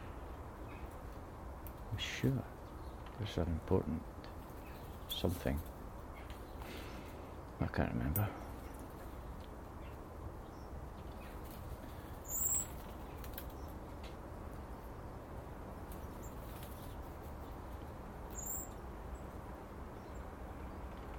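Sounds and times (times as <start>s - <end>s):
blackbirds flying overhead: 0.0s - 21.1s
speech: 1.9s - 2.6s, 3.2s - 4.1s, 5.2s - 5.7s, 7.6s - 8.4s.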